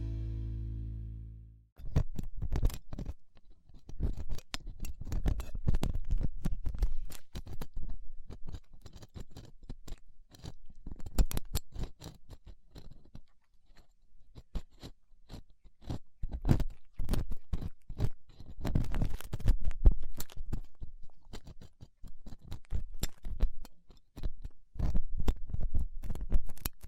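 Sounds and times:
low hum: 0.0 - 1.7
ear cleaning crackling and scraping with latex gloves, dental pick and cotton swabs: 1.8 - 26.8.

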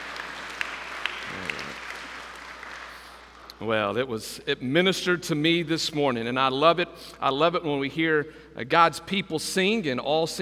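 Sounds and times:
audience applause: 0.0 - 3.5
speech: 3.6 - 10.3.

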